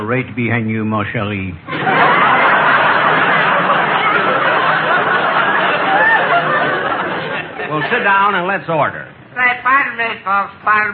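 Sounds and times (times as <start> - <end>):
speech: 0.1 - 2.2, 7.7 - 10.9
people snickering and chuckling: 1.7 - 8.3
crowd chatter in a nightclub: 1.8 - 8.6.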